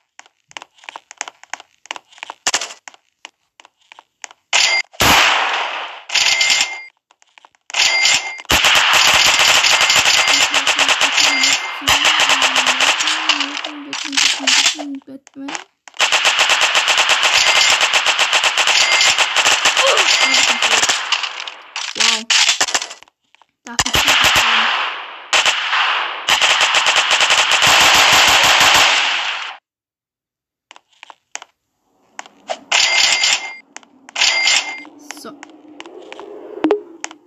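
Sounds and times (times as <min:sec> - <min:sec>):
machine gun firing: 0:04.6 - 0:06.9, 0:07.8 - 0:14.9, 0:16.0 - 0:23.0, 0:23.7 - 0:29.6, 0:32.2 - 0:35.0.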